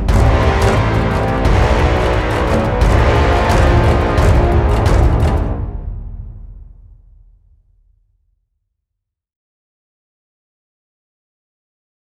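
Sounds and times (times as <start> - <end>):
thunderstorm: 0.1 - 7.1.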